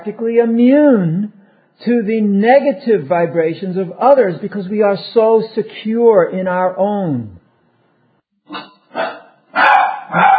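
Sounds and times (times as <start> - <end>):
speech: 0.0 - 7.4
dog barking at the doorbell: 8.5 - 10.3.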